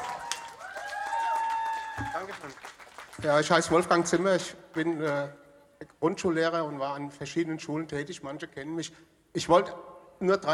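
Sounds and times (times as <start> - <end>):
audience applause: 0.0 - 4.0
speech: 2.0 - 10.5.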